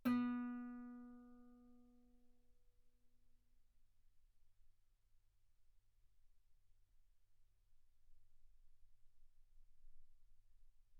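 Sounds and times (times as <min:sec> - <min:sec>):
guitar note B3: 0:00.0 - 0:01.6.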